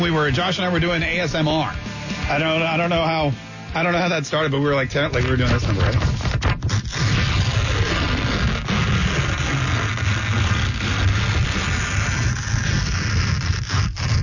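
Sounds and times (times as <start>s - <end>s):
speech: 0.2s - 6.2s
paper tearing: 5.0s - 14.2s.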